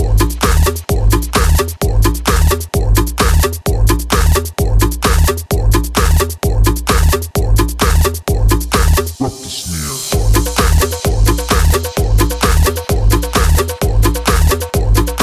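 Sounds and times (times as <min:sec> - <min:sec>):
snare drum: 0:00.0 - 0:09.2, 0:10.1 - 0:15.2.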